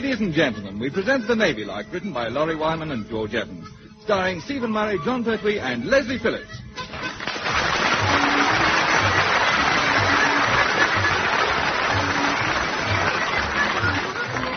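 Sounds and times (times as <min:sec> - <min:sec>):
speech: 0:00.0 - 0:06.6
crowd applauding: 0:06.9 - 0:14.5.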